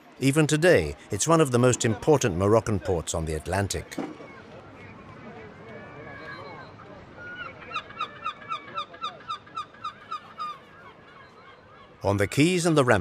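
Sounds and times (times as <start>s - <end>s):
murky noise: 0.0s - 12.9s
speech: 0.2s - 4.2s, 12.0s - 12.9s
gulls calling at a harbour: 5.9s - 12.9s.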